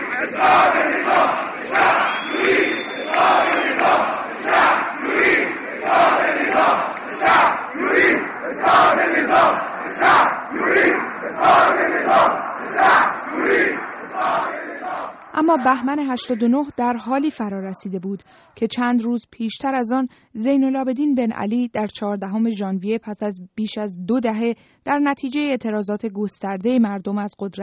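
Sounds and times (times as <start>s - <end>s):
large protest crowd chanting a slogan in unison: 0.0s - 17.8s
speech: 0.2s - 2.0s, 15.6s - 27.6s
whistles: 1.8s - 3.9s, 12.0s - 14.4s.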